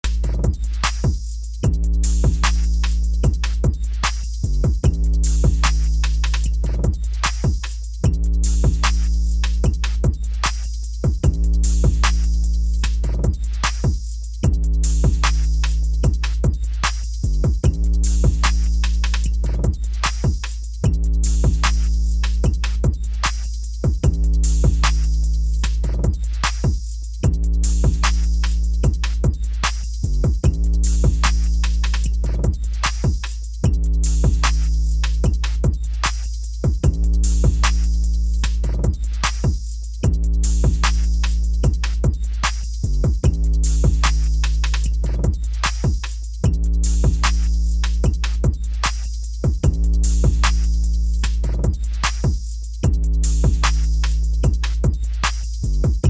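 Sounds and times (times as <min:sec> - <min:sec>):
rolling trap beat: 0:00.0 - 0:56.0.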